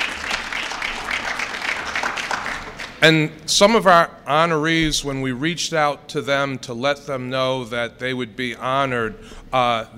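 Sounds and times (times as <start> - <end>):
audience applause for honorees: 0.0 - 3.0
speech: 3.0 - 9.9.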